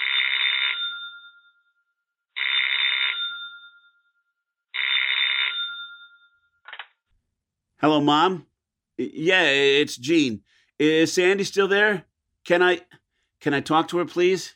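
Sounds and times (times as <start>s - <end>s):
telephone ringing as a call is placed: 0.0s - 7.0s
speech: 7.8s - 14.5s.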